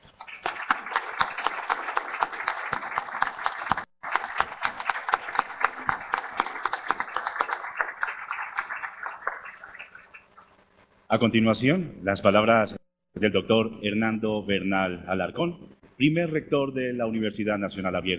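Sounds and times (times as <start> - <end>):
crowd applause: 0.1 - 10.2
speech: 11.1 - 18.1.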